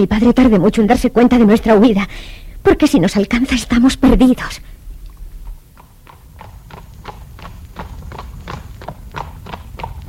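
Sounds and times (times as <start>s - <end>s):
speech: 0.0s - 4.8s
low rumbling background: 0.0s - 10.0s
horses galloping away: 5.1s - 10.0s.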